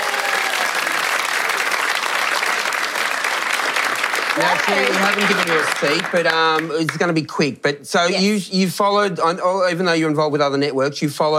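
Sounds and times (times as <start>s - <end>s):
audience applause welcoming a renovation expert: 0.0s - 7.2s
speech: 4.4s - 11.3s.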